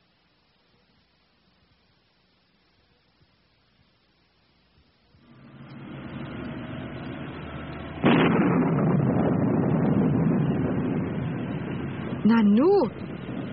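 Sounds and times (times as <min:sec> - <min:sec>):
thunder: 0:05.3 - 0:13.5
speech: 0:12.3 - 0:13.0.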